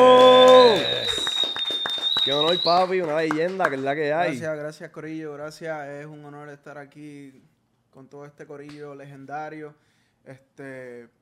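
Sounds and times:
studio applause: 0:00.0 - 0:04.4
speech: 0:02.3 - 0:11.2.

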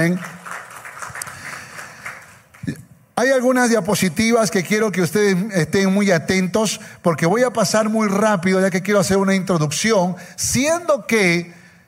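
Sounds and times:
speech: 0:00.0 - 0:00.4, 0:03.2 - 0:11.6
audience applause: 0:00.0 - 0:02.6.

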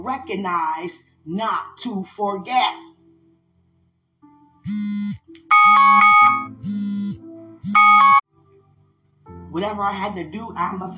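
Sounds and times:
speech: 0:00.0 - 0:02.8, 0:04.7 - 0:07.8, 0:09.5 - 0:10.9
electronic alarm: 0:04.7 - 0:08.2.

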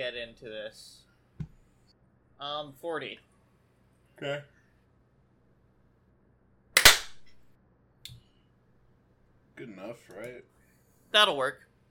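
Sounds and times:
speech: 0:00.1 - 0:01.0, 0:02.4 - 0:03.3, 0:04.2 - 0:04.6, 0:09.6 - 0:10.5, 0:11.1 - 0:11.7
sync hand clap before recording: 0:06.8 - 0:07.2.

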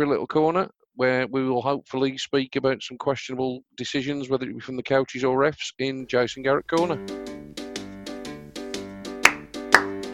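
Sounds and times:
speech: 0:00.0 - 0:07.3
hands clapping: 0:09.2 - 0:10.1.

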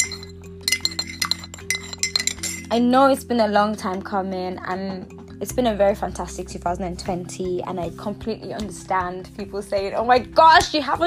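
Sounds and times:
porcelain teacup tapping against its saucer: 0:00.0 - 0:02.7
speech: 0:02.7 - 0:11.0.

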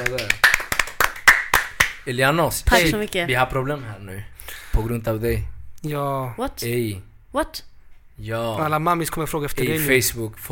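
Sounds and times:
applause: 0:00.0 - 0:02.0
speech: 0:02.1 - 0:10.5.

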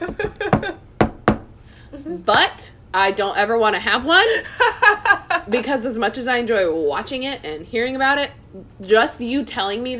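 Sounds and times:
knocking on wood: 0:00.0 - 0:01.6
speech: 0:02.2 - 0:09.9.

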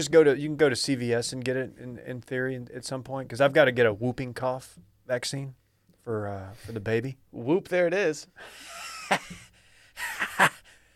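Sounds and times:
speech: 0:00.0 - 0:09.4
person gasping while choking: 0:09.5 - 0:10.9.

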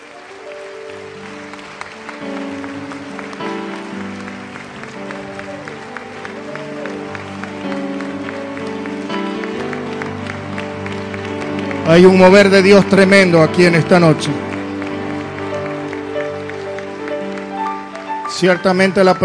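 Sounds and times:
applause: 0:00.0 - 0:19.2
speech: 0:11.9 - 0:14.4, 0:18.4 - 0:19.2.

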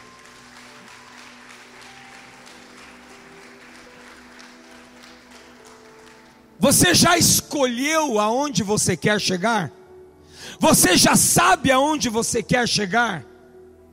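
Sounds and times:
audience applause: 0:00.0 - 0:06.5
speech: 0:06.6 - 0:09.8, 0:10.6 - 0:13.3.

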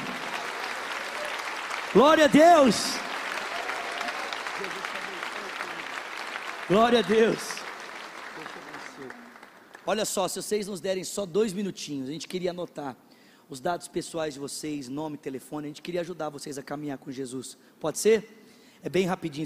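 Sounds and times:
audience applauding: 0:00.0 - 0:10.1
speech: 0:01.9 - 0:03.1, 0:04.6 - 0:04.9, 0:06.7 - 0:07.6, 0:09.8 - 0:19.4.

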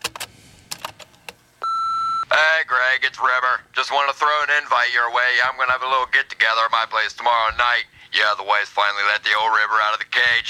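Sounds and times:
answering machine beep: 0:01.6 - 0:02.3
speech: 0:02.9 - 0:10.4.

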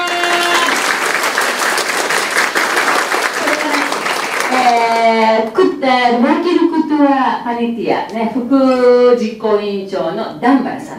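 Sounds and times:
audience applause: 0:00.0 - 0:05.2
speech: 0:05.4 - 0:10.9.

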